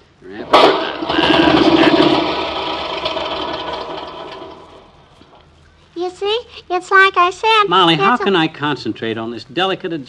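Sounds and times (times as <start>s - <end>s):
small lawnmower engine starting: 0.3s - 5.4s
speech: 6.9s - 10.0s.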